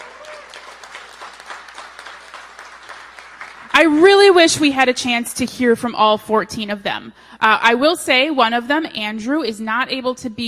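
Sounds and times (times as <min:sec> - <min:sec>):
audience applause: 0:00.0 - 0:03.8
speech: 0:03.8 - 0:10.4.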